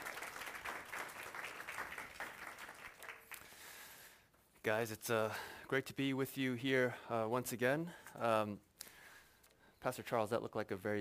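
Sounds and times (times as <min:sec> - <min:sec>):
audience round of applause: 0:00.0 - 0:03.7
speech: 0:04.6 - 0:08.7, 0:09.8 - 0:10.9.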